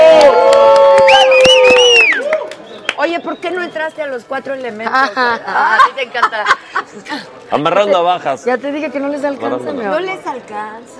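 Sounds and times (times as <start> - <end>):
loud crowd cheering and shouting with high whoops: 0.0 - 2.6
scattered audience clapping: 0.1 - 3.1
speech: 3.7 - 10.9.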